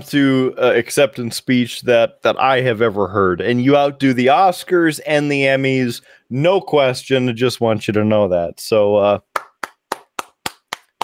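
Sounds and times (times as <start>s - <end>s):
speech: 0.0s - 9.3s
slow handclaps: 9.3s - 11.0s.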